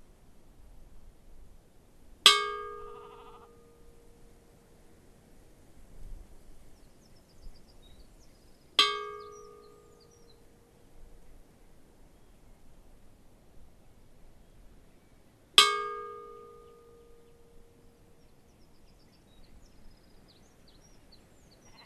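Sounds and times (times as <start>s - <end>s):
funeral bell tolling at Staðarfell church: 2.3s - 3.9s, 8.8s - 10.1s, 15.6s - 17.9s.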